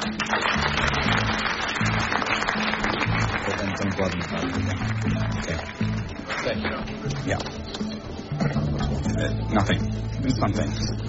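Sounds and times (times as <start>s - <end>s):
crowd applause: 0.0s - 7.3s
speech: 3.9s - 11.0s.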